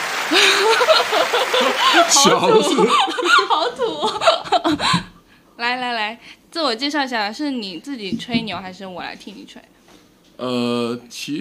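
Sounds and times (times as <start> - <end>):
applause sound effect: 0.0 - 3.2
speech: 0.3 - 5.0, 5.6 - 9.8, 10.4 - 11.3
laughter: 0.3 - 5.1.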